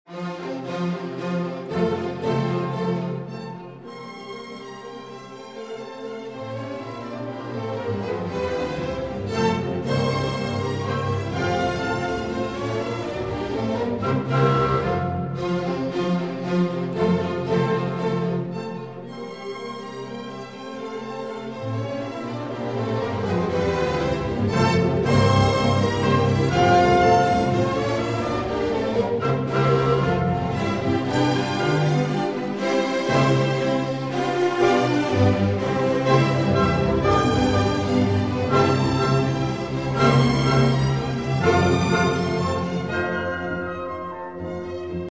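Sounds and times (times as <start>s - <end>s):
symphonic minuet in F major: 0.1s - 45.0s.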